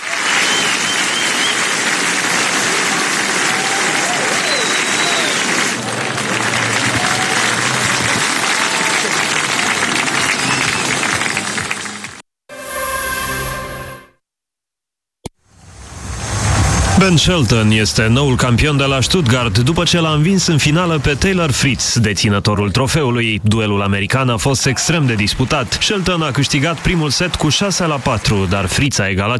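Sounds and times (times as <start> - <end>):
crowd ovation and applause: 0.0 - 12.8, 16.0 - 21.8, 24.3 - 29.1
speech: 17.0 - 29.3.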